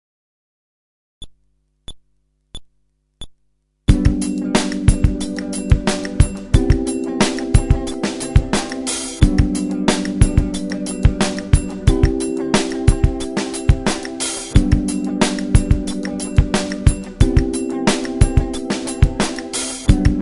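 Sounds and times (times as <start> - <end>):
groove without bass: 1.2 - 20.2.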